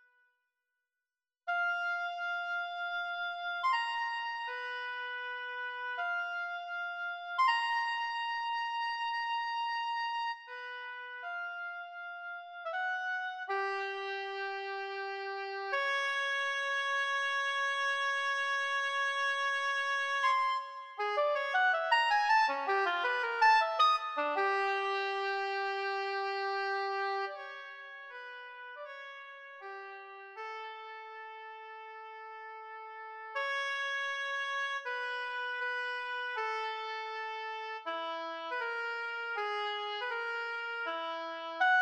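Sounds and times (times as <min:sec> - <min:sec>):
oboe solo: 0:01.5 - 0:31.6, 0:32.6 - 0:41.8.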